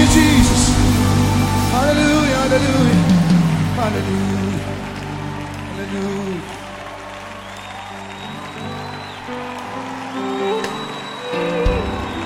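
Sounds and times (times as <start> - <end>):
person's voice: 0.0 - 4.8, 5.7 - 6.6
sustained tones: 0.0 - 5.0
church congregation clapping in praise: 0.0 - 12.2
speech: 5.9 - 6.6.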